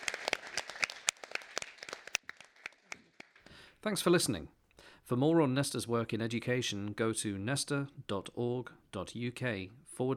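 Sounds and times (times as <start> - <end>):
audience round of applause: 0.0 - 3.4
speech: 3.8 - 10.1.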